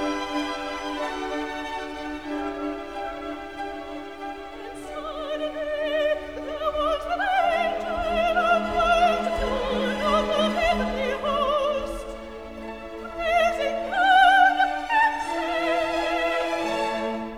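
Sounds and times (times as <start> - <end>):
soprano singing recitative: 0.2 - 17.3.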